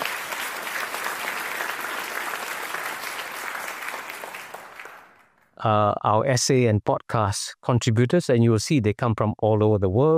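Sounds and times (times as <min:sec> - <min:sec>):
audience applause: 0:00.0 - 0:05.4
speech: 0:05.6 - 0:10.1.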